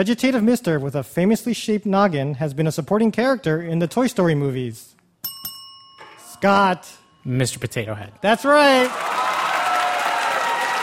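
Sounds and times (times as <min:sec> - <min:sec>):
speech: 0:00.0 - 0:05.0, 0:06.4 - 0:09.2
audience applause: 0:08.7 - 0:10.8.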